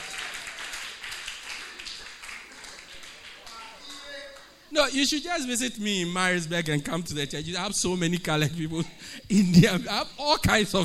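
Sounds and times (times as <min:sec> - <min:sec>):
audience clapping: 0:00.0 - 0:04.6
speech: 0:04.7 - 0:10.8.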